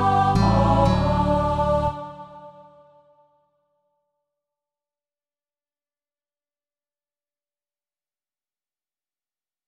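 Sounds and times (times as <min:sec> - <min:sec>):
church schola choir singing: 0:00.0 - 0:03.5.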